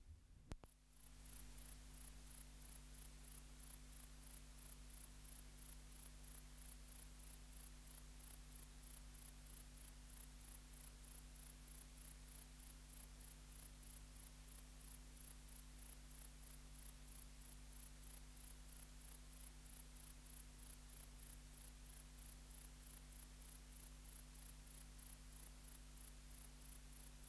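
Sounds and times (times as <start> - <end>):
grey bush-cricket chirping: 0.9 - 27.2.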